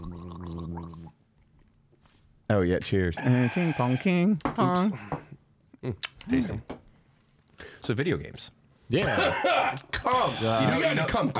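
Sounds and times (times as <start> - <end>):
person gargling whiskey: 0.0 - 1.2
speech: 2.5 - 5.2, 5.8 - 6.7, 7.8 - 11.3.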